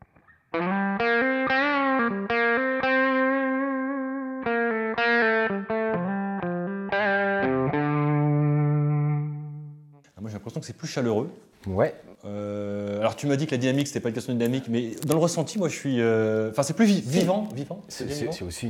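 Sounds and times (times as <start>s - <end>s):
electric guitar recorded through a DI with processing playing a distorted chorus melody: 0.0s - 10.0s
speech: 10.6s - 18.6s.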